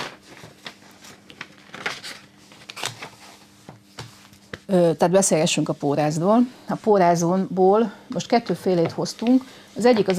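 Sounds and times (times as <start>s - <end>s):
page turning: 0.0s - 4.6s
speech: 4.7s - 10.1s.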